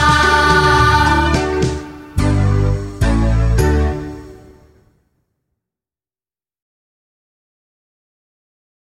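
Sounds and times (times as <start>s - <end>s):
song: 0.0s - 5.0s.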